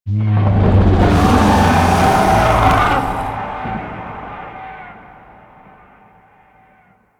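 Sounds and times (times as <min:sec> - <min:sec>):
distant idle void dragon vocal: 0:00.4 - 0:04.7.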